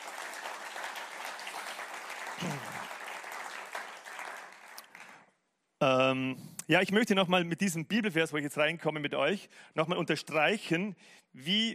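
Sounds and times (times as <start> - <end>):
audience applause: 0.0 - 5.3
speech: 5.8 - 11.7.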